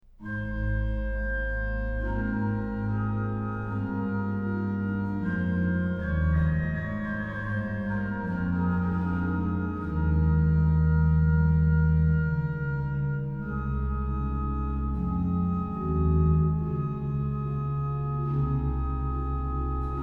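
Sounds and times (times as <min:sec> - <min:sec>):
organ playing a hymn: 0:00.2 - 0:20.0.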